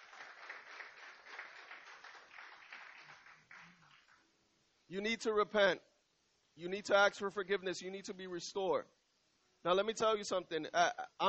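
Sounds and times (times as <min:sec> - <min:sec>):
church audience applause: 0:00.0 - 0:04.2
speech: 0:04.9 - 0:05.9, 0:06.6 - 0:09.0, 0:09.6 - 0:11.2.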